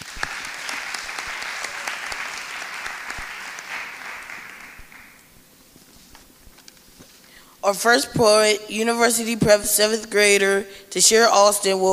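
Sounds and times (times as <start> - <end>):
audience applause: 0.0 - 5.3
speech: 7.6 - 11.9.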